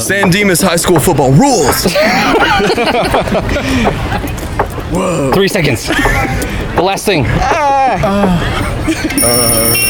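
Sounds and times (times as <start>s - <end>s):
speech: 0.1s - 9.8s
laughter: 1.8s - 4.6s, 5.2s - 9.8s
electronic timers ringing: 9.1s - 9.8s.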